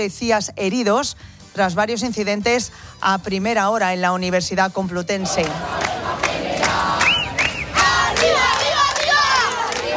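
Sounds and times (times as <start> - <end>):
speech: 0.0 - 6.5
striking teachers' protest crowd shouting and chanting: 5.2 - 9.9
whistle blasts: 7.0 - 7.8.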